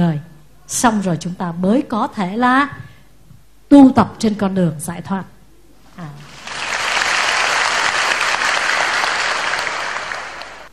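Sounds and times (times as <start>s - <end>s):
speech: 0.0s - 2.9s, 3.7s - 5.3s
audience applause during a Buddhist dharma talk: 6.2s - 10.7s.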